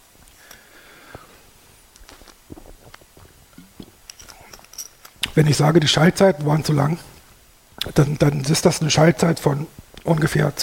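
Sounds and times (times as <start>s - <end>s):
speaker sipping a drink: 0.3s - 5.3s
speech: 5.4s - 7.2s, 7.9s - 10.6s.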